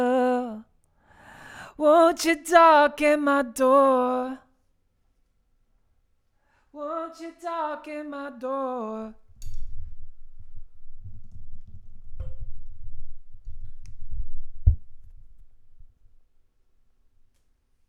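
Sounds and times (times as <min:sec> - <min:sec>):
vocals: 0:00.0 - 0:04.6, 0:06.5 - 0:09.6.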